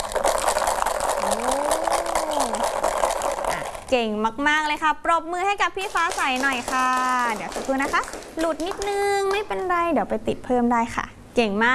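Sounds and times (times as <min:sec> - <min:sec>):
bead-filled bottle shaker rattling: 0:00.0 - 0:04.0, 0:05.8 - 0:09.5
speech: 0:03.9 - 0:11.7.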